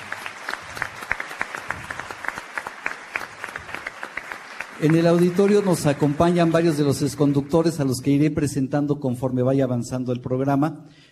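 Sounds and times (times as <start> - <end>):
audience applause: 0.0 - 7.9
speech: 4.8 - 11.0.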